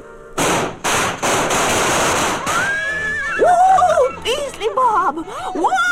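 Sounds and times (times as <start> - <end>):
firecrackers going off: 0.4 - 2.9
laughter: 2.7 - 5.8.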